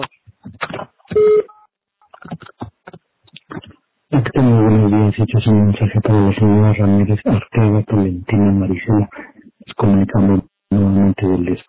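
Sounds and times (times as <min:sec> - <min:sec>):
voicemail recording tone beep: 0:01.2 - 0:01.6
speech: 0:05.2 - 0:11.6.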